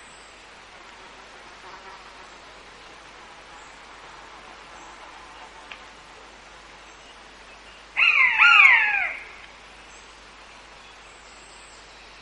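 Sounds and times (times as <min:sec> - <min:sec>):
common buzzard mewing: 0:08.0 - 0:09.5.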